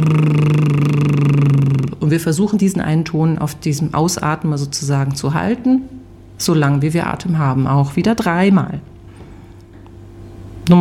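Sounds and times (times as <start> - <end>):
voiced lip trill imitating a car engine: 0.0 - 2.0
speech: 2.1 - 8.9.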